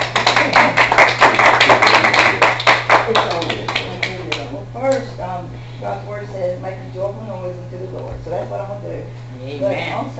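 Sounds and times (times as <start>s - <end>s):
audience clapping hands: 0.0s - 5.0s
speech: 5.9s - 10.1s.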